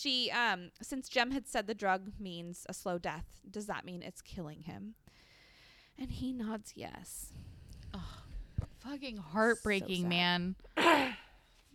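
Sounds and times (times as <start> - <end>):
speech: 0.0 - 5.2, 6.0 - 8.2, 8.8 - 11.2
cough: 10.8 - 11.3.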